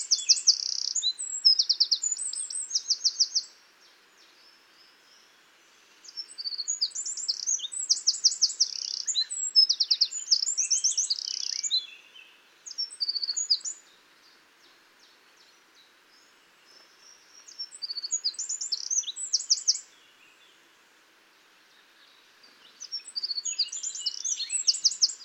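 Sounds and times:
Eurasian wren singing: 0.0 - 3.5, 6.0 - 13.8, 17.1 - 20.2, 22.6 - 25.2.

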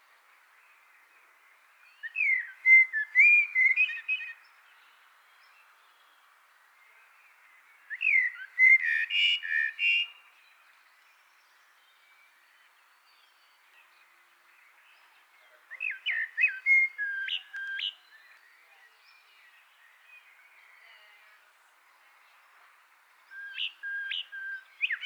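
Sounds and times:
Eurasian blackbird singing: 1.9 - 4.4, 7.9 - 10.1, 14.9 - 21.4, 23.3 - 25.0.

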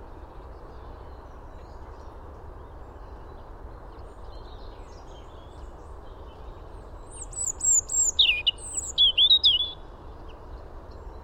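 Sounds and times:
European robin singing: 7.1 - 9.9.

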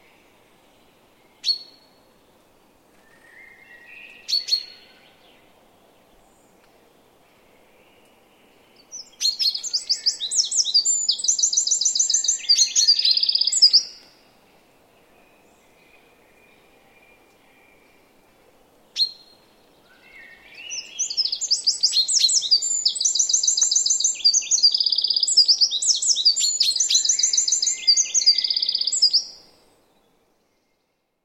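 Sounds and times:
Eurasian wren song: 0.0 - 18.3, 18.9 - 31.0.

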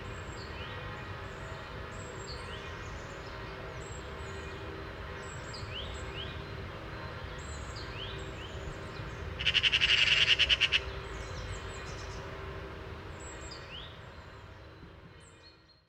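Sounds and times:
Eurasian magpie chattering: 9.4 - 10.9.

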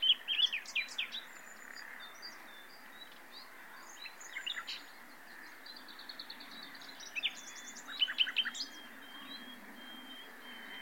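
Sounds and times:
common nightingale Luscinia megarhynchos singing: 0.0 - 2.8, 6.2 - 10.8.

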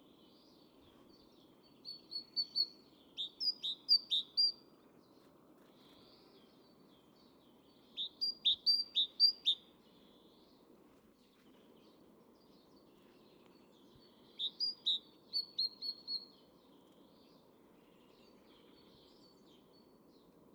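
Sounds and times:
low background noise: 0.0 - 20.5
great tit whistled notes: 8.0 - 9.6, 14.4 - 16.3.

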